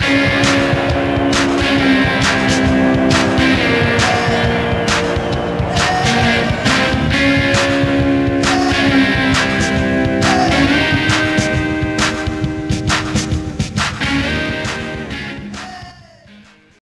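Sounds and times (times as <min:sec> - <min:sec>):
short tune: 0:00.0 - 0:15.5.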